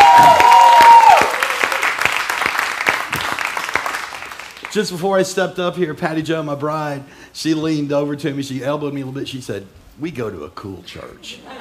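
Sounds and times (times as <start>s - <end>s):
audience applause: 0.0s - 4.7s
speech: 4.8s - 11.5s.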